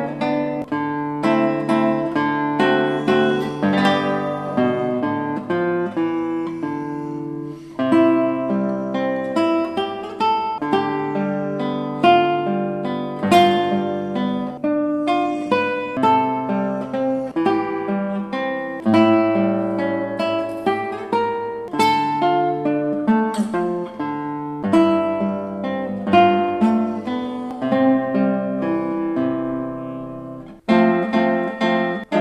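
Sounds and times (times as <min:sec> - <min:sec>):
nocturne played on guitar: 0:00.0 - 0:32.1.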